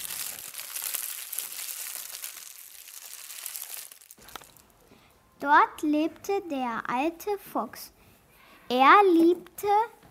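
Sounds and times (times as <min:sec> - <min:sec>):
warm fire crackling deep in a cave: 0:00.0 - 0:04.8
speech: 0:05.4 - 0:08.0, 0:08.7 - 0:10.0.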